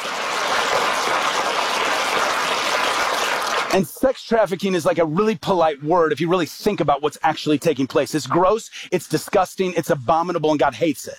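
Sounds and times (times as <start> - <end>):
audience applause: 0.0 - 3.8
speech: 3.7 - 11.1.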